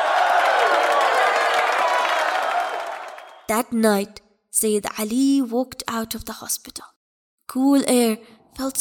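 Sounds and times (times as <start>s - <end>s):
large crowd cheering and clapping: 0.0s - 3.5s
speech: 3.5s - 6.9s, 7.5s - 8.7s.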